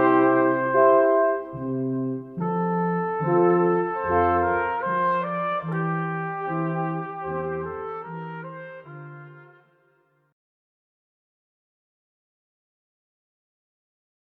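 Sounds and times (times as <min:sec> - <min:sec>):
brass quintet playing an arioso: 0:00.0 - 0:10.0.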